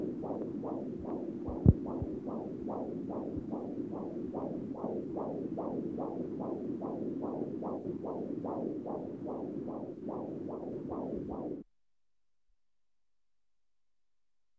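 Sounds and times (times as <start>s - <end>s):
foetal heartbeat in a hospital: 0.0s - 11.6s.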